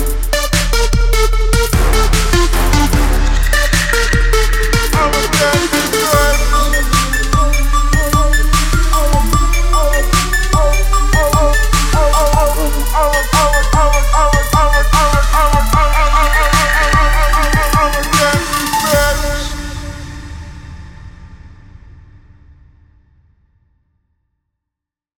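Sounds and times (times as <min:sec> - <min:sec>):
trap drum kit: 0:00.0 - 0:20.5.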